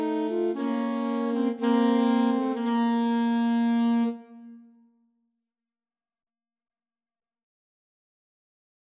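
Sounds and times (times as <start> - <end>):
pastorale for two alto saxophones and tenor saxophone: 0.0 - 4.5.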